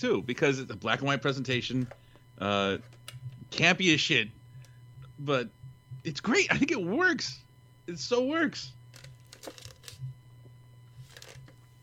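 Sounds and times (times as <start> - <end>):
speech: 0.0 - 4.4, 5.2 - 8.8
steady low hum: 0.0 - 11.8
drink container crinkling while gripped and sipped: 8.9 - 10.0, 11.0 - 11.6.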